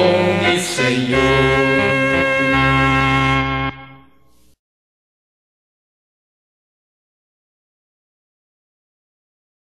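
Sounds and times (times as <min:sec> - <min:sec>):
singing praise to God: 0:00.0 - 0:03.4.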